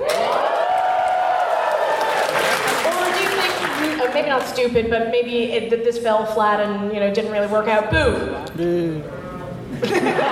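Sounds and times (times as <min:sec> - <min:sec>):
live crowd cheering at a PAX gaming convention panel: 0:00.0 - 0:04.3
speech: 0:04.2 - 0:10.2
laughter: 0:09.7 - 0:10.2.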